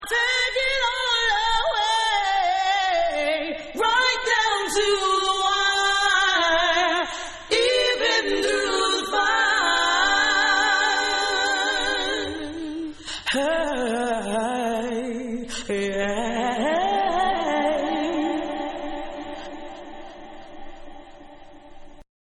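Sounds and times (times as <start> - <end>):
a cappella singing: 0.0 - 22.0.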